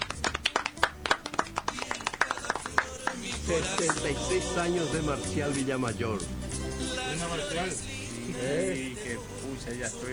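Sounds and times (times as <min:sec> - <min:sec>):
applause for a birthday: 0:00.0 - 0:04.1
speech: 0:03.5 - 0:06.4, 0:07.2 - 0:10.1.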